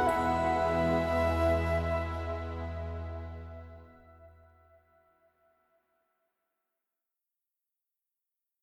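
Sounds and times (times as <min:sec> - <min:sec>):
instrumental music: 0:00.0 - 0:04.7.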